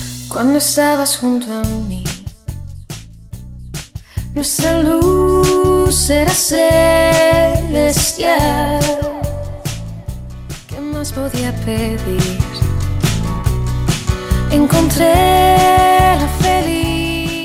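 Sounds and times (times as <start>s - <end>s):
a cappella intro vocals at 71 BPM: 0.3s - 2.7s, 4.1s - 12.8s, 14.1s - 17.4s.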